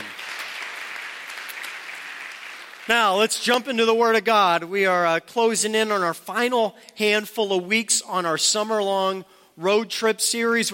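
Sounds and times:
audience applause: 0:00.0 - 0:03.1
speech: 0:02.9 - 0:10.7.

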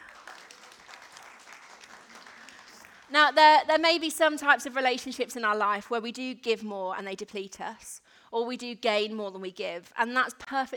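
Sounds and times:
audience applause: 0:00.0 - 0:03.1
speech: 0:03.1 - 0:10.7.

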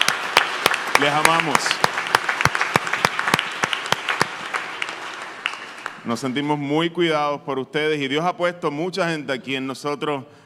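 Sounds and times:
audience applause: 0:00.0 - 0:06.4
speech: 0:01.0 - 0:01.9, 0:06.0 - 0:10.4.

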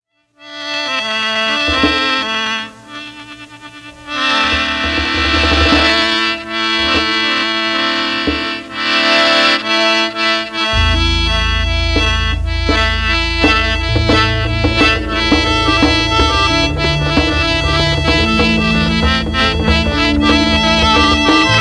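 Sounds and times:
khene accordion: 0:00.4 - 0:21.5.

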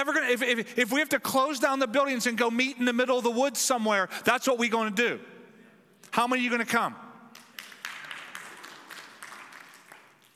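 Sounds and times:
speech: 0:00.0 - 0:05.3, 0:06.1 - 0:07.0
audience clapping: 0:07.3 - 0:10.3.

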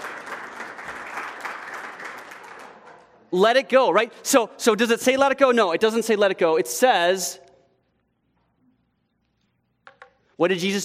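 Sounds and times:
applause: 0:00.0 - 0:03.2
speech: 0:03.3 - 0:07.4, 0:10.4 - 0:10.8.

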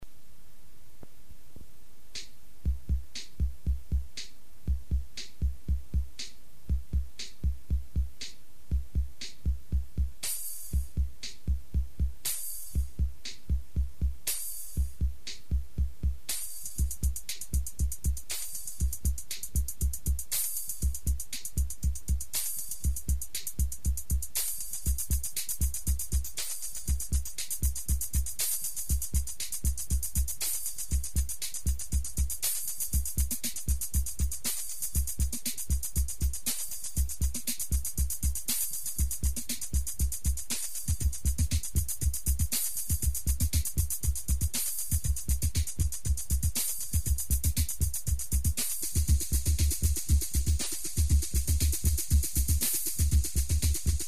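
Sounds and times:
drums: 0:02.1 - 0:54.0.

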